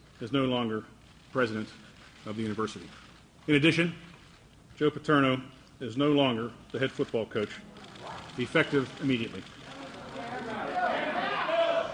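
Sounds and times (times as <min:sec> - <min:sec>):
speech: 0:00.2 - 0:04.1, 0:04.8 - 0:07.7, 0:08.4 - 0:09.6
shocked crowd of reporters murmuring and exclaiming: 0:09.5 - 0:11.9.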